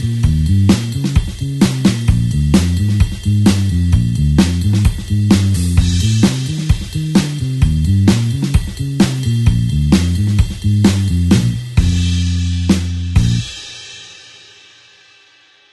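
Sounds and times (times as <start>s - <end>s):
blues eight-beat basic backing pattern in B flat: 0.0s - 13.8s.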